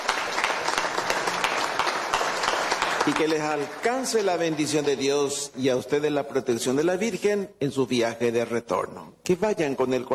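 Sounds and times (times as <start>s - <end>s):
audience applause: 0.0s - 5.0s
speech: 3.1s - 10.1s.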